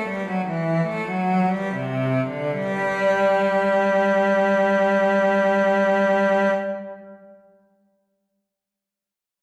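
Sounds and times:
string trio playing: 0.0s - 7.1s.

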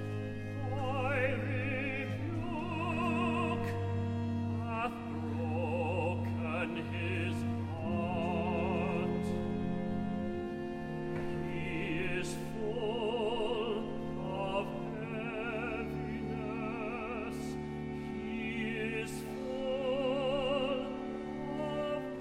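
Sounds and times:
tenor singing recitative: 0.2s - 10.2s, 11.1s - 22.1s.

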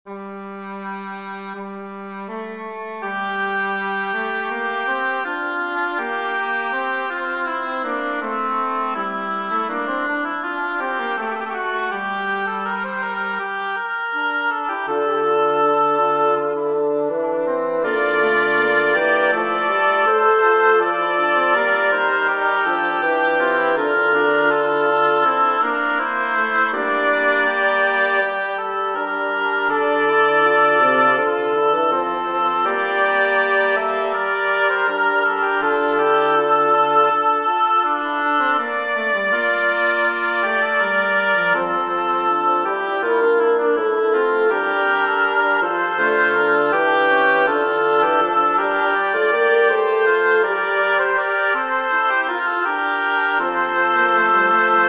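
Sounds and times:
double reed quartet: 0.1s - 54.8s.

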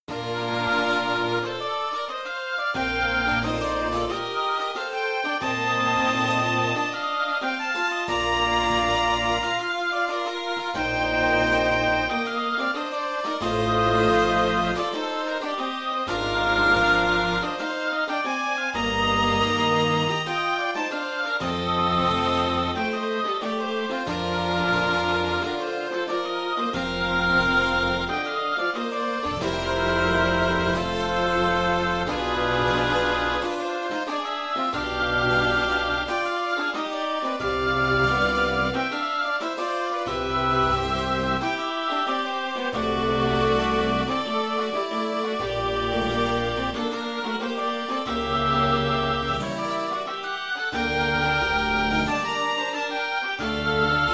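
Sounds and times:
baroque harpsichord orchestration: 0.0s - 54.1s.

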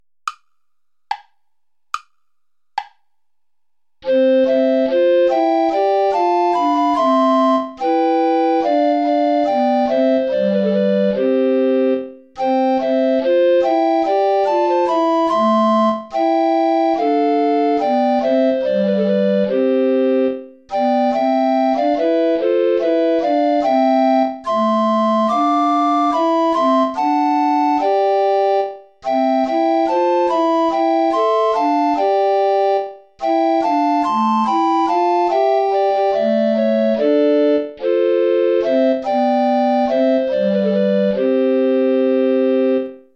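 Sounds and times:
recorder ensemble play-along music without tenor recorder: 4.0s - 43.0s.

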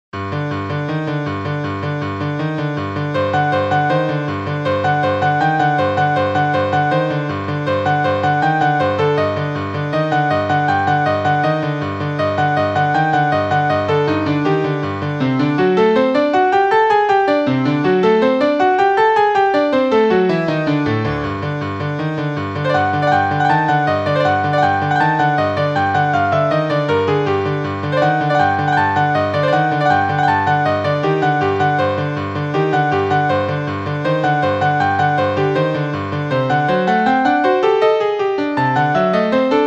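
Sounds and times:
piano piece: 0.2s - 39.6s.

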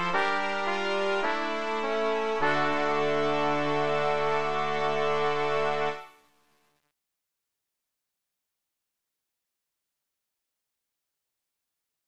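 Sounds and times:
organ entrata played grave: 0.0s - 6.1s.

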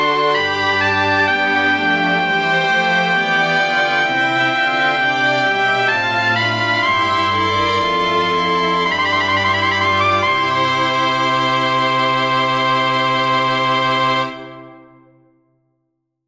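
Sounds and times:
strings playing a chorale: 0.0s - 15.0s
piccolo trumpet playing a chorale: 0.0s - 15.1s.

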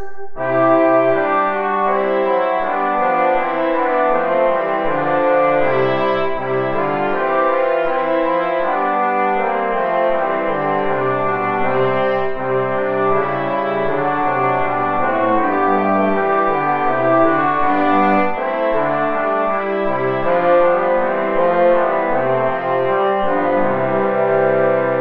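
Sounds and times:
play-along backing music without trumpet: 0.4s - 25.0s.

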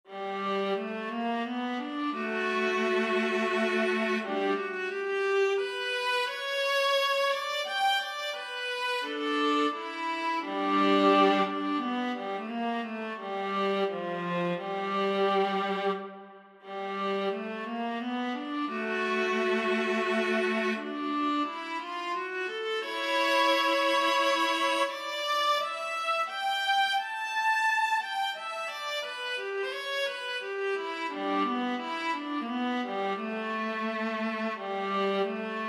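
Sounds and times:
intermezzo larghetto: 0.1s - 35.6s.

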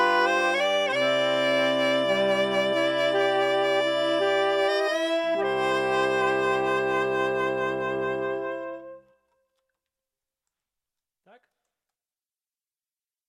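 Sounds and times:
saxophone quartet: 0.0s - 9.2s.

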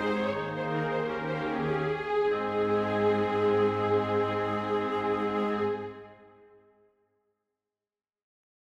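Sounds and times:
strings: 0.0s - 6.5s
wind instruments: 0.0s - 6.6s.

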